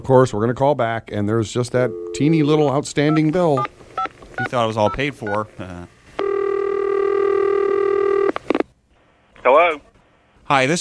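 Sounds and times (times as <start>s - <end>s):
speech: 0.0s - 3.8s, 4.4s - 6.0s, 9.4s - 9.7s, 10.5s - 10.8s
buzzy telephone tone: 6.2s - 8.6s.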